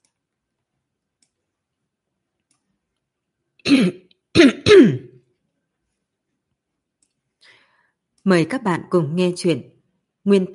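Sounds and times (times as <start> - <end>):
person with a sore throat clearing throat: 3.6 - 5.2
speech: 3.7 - 4.9, 8.2 - 10.5.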